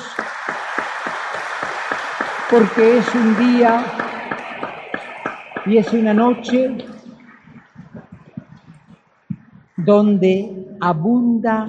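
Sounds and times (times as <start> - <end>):
audience applause: 0.0 - 8.9
speech: 2.5 - 4.0, 5.6 - 7.0, 9.9 - 11.6.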